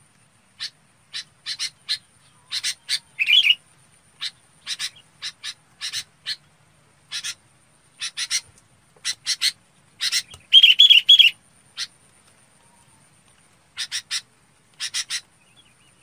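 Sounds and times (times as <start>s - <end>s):
Red-whiskered bulbul chattering: 0.6s - 6.4s, 7.1s - 12.0s, 13.8s - 15.6s.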